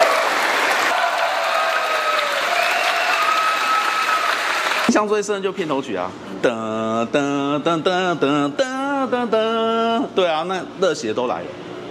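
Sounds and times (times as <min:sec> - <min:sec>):
theater audience applause: 0:00.0 - 0:05.0
speech: 0:05.0 - 0:11.7.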